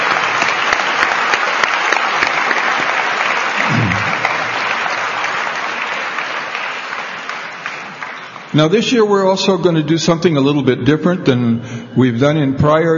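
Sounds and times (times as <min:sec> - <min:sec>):
audience applause: 0:00.0 - 0:08.8
speech: 0:08.6 - 0:12.9.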